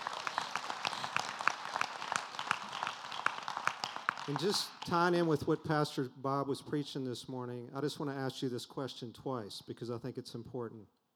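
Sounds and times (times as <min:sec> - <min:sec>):
audience applause: 0:00.0 - 0:05.1
speech: 0:04.3 - 0:11.0.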